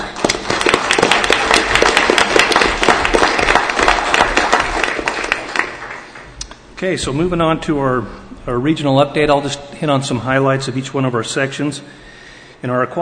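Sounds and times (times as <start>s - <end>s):
round of applause: 0.0s - 6.4s
speech: 6.8s - 13.0s.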